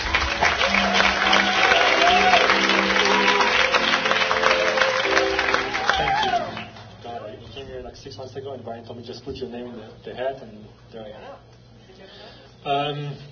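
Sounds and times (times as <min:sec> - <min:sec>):
audience applause: 0:00.0 - 0:07.2
speech: 0:08.8 - 0:13.3.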